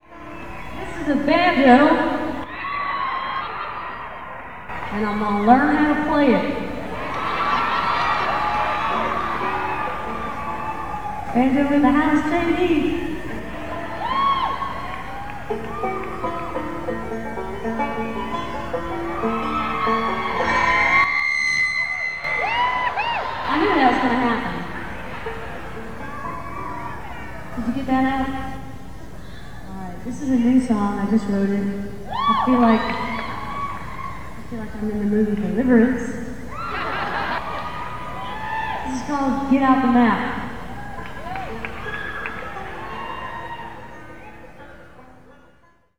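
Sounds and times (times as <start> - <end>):
laughter: 0.0 - 29.7, 31.8 - 45.7
crowd talking: 0.0 - 45.9
banjo: 4.8 - 21.1, 23.5 - 29.2, 39.0 - 45.9.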